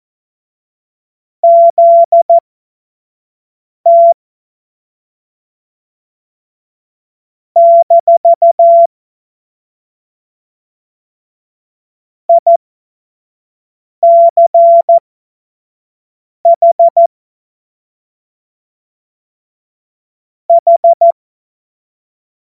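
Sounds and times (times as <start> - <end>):
CW Morse code beeps: 1.4 - 2.4, 3.9 - 4.2, 7.6 - 8.9, 12.3 - 12.6, 14.0 - 15.0, 16.5 - 17.1, 20.5 - 21.2.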